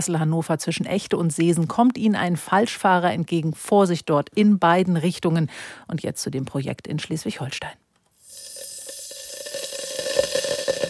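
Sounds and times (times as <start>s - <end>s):
speech: 0.0s - 7.8s
water boiling inside a hot water tank: 8.2s - 10.8s.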